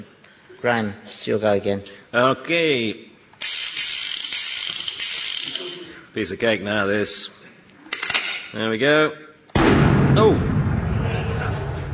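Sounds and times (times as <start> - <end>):
speech: 0.6 - 3.1, 6.1 - 7.4, 8.5 - 9.3, 10.2 - 10.5
gunfire from enemies firing back: 9.6 - 11.8.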